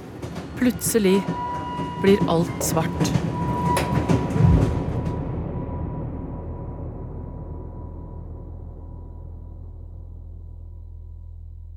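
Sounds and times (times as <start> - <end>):
train rolling along the rails: 0.0 - 8.8
train wheel squeal: 0.2 - 6.2
speech: 0.6 - 3.4.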